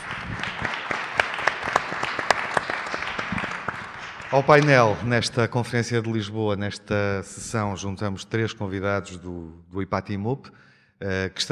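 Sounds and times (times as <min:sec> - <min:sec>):
audience applause: 0:00.0 - 0:05.1
speech: 0:04.3 - 0:11.5.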